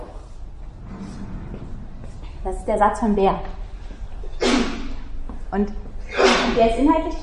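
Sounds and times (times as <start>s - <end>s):
speech: 2.7s - 3.6s, 5.6s - 5.8s, 6.6s - 7.2s
sneeze: 4.4s - 5.0s, 6.1s - 6.6s.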